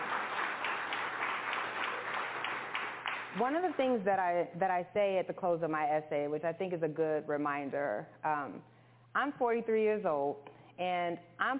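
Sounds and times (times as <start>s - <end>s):
audience clapping: 0.0s - 3.9s
speech: 3.4s - 11.5s.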